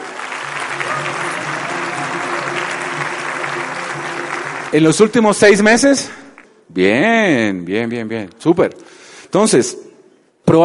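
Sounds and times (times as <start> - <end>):
indoor audience applause: 0.0 - 6.4
speech: 4.7 - 9.8, 10.5 - 10.6.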